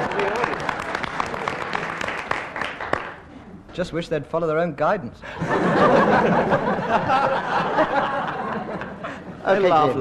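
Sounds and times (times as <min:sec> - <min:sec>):
crowd applauding: 0:00.0 - 0:03.3
speech: 0:03.8 - 0:08.2, 0:09.5 - 0:09.9
laughter: 0:05.3 - 0:09.9.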